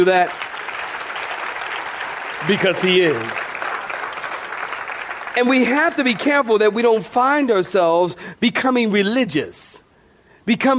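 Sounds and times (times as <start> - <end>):
speech: 0.0 - 0.5, 2.4 - 3.5, 5.4 - 9.6, 10.4 - 10.7
large crowd clapping hands: 0.0 - 7.0.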